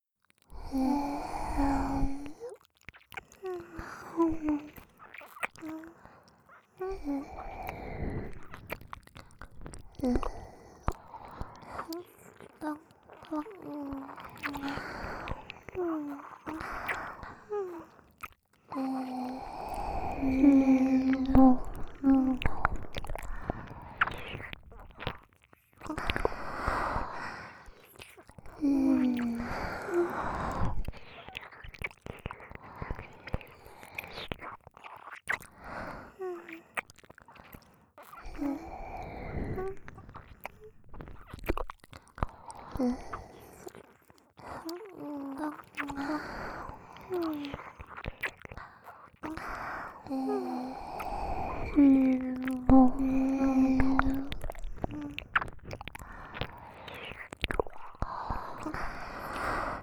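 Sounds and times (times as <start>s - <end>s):
ear licking: 0.4s - 59.8s.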